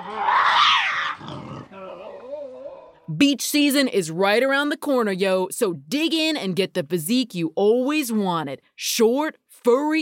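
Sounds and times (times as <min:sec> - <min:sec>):
Tasmanian devil screaming and growling: 0:00.0 - 0:02.9
speech: 0:03.2 - 0:10.0.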